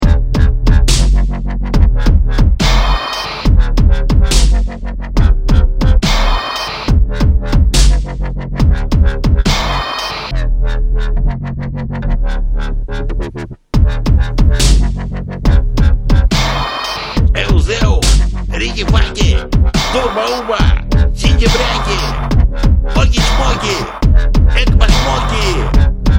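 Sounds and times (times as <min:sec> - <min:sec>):
dubstep music: 0:00.0 - 0:26.1.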